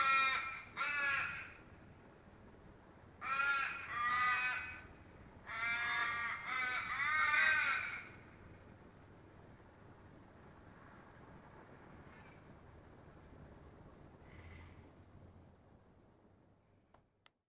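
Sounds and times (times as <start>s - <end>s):
raven cawing: 0.0s - 1.8s, 3.2s - 8.3s, 12.0s - 12.5s.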